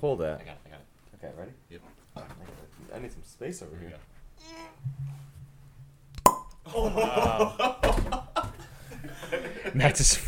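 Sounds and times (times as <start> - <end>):
speech: 0.0 - 5.2, 6.6 - 8.2, 9.0 - 10.2
mead bottle being uncorked: 6.1 - 6.7
laughter: 6.6 - 10.0.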